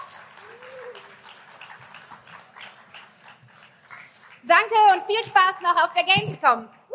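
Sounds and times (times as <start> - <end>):
audience applause: 0.0 - 4.8
speech: 4.4 - 6.8.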